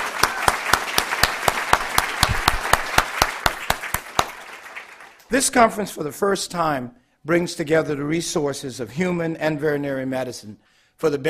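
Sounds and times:
round of applause: 0:00.0 - 0:05.3
speech: 0:05.3 - 0:11.2.

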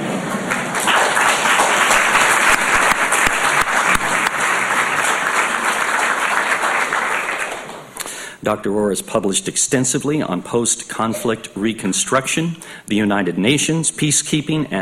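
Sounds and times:
audience applause: 0:00.0 - 0:08.0
speech: 0:08.5 - 0:14.8.

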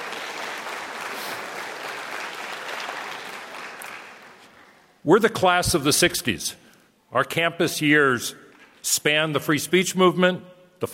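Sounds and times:
audience applause: 0:00.0 - 0:04.9
speech: 0:05.0 - 0:10.9.

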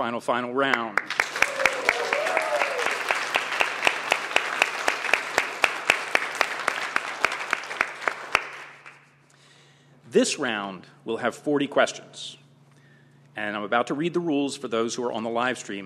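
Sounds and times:
speech: 0:00.0 - 0:01.2, 0:10.1 - 0:12.4, 0:13.4 - 0:15.8
audience applause at a quiz competition at the UC Davis Graduate School of Management: 0:01.0 - 0:09.0.

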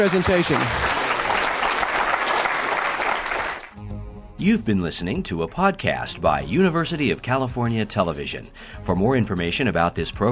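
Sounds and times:
speech: 0:00.0 - 0:00.9, 0:04.4 - 0:10.3
audience applause: 0:00.0 - 0:03.8.

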